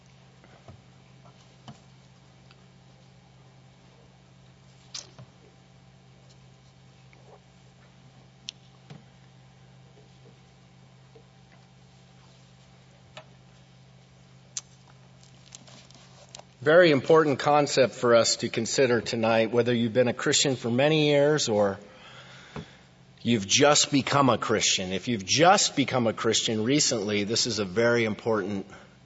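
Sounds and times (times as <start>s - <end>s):
Bible pages turning: 15.2s - 16.6s
speech: 16.6s - 21.9s, 23.2s - 28.8s.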